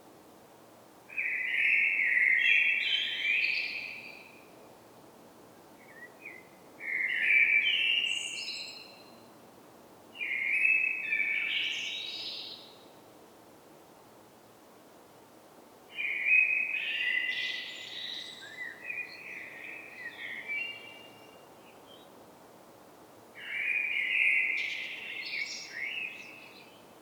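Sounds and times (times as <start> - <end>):
Common blackbird song: 1.1 - 4.4, 5.8 - 9.3, 10.2 - 12.8, 15.9 - 22.2, 23.4 - 26.9.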